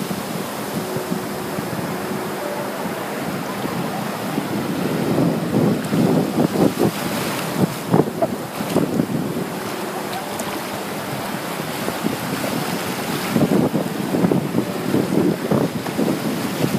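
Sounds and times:
sea churning with surf: 0.0s - 16.7s.

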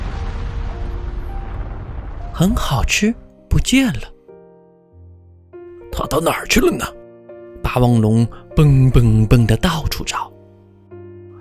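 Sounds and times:
volcano erupting with a boom: 0.0s - 3.3s
speech: 2.4s - 4.1s, 6.0s - 7.0s, 7.7s - 10.3s.

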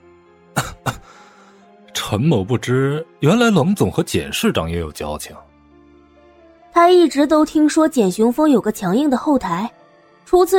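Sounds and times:
person coughing: 0.6s - 1.2s
speech: 2.1s - 5.5s, 6.8s - 10.5s.

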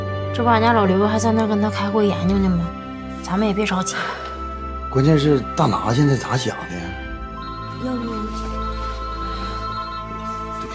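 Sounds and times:
speech: 0.3s - 4.3s, 4.9s - 7.0s
phone ringtone: 6.0s - 10.7s.

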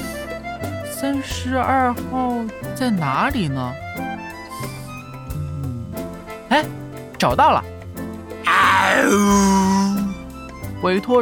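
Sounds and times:
speech: 1.0s - 4.7s, 6.6s - 7.8s, 9.0s - 10.0s, 10.8s - 11.2s
tiger roar: 8.4s - 10.1s.

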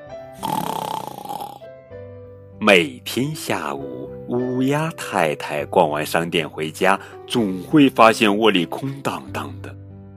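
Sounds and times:
person snoring: 0.4s - 1.7s
speech: 2.6s - 9.8s.

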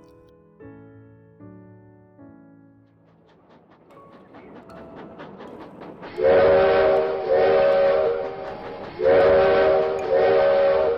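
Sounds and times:
steam train chuffing: 3.0s - 10.9s
train whistle as train departs: 6.2s - 10.9s.

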